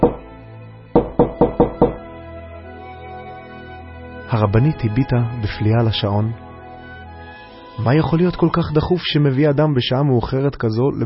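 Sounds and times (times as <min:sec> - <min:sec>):
loud knocking on a door: 0:00.0 - 0:00.3, 0:01.0 - 0:02.1
speech: 0:04.3 - 0:06.4, 0:07.8 - 0:11.0.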